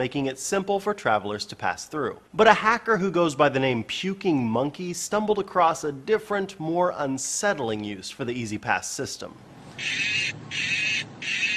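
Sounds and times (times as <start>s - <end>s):
speech: 0.0s - 10.8s
electronic mooing: 9.8s - 11.5s.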